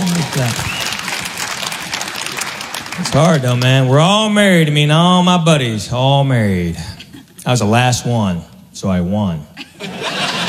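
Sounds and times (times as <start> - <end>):
audience clapping at a comedy show: 0.0 - 4.4
speech: 0.4 - 0.7, 3.0 - 9.5
laughter: 9.6 - 10.4.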